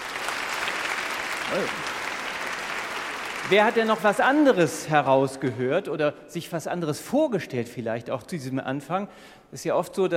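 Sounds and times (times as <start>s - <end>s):
audience applause: 0.0s - 4.7s
speech: 1.5s - 2.0s, 3.4s - 10.1s.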